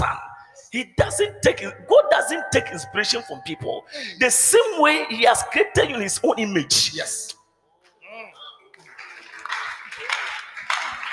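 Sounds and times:
speech: 0.7s - 7.4s
audience clapping: 8.6s - 11.1s.

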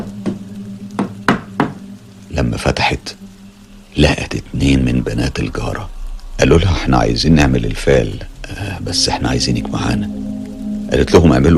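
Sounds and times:
low hum: 0.0s - 11.5s
knocking on a door in a horror story: 1.0s - 1.8s
speech: 2.4s - 3.2s, 3.9s - 10.2s, 10.9s - 11.5s.

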